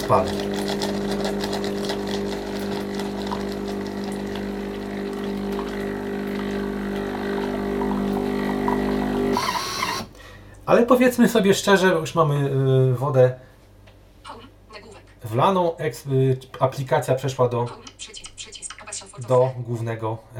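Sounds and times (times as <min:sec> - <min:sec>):
espresso machine brewing: 0:00.0 - 0:10.1
speech: 0:00.1 - 0:00.5, 0:10.7 - 0:13.5, 0:15.3 - 0:18.1, 0:19.2 - 0:20.3.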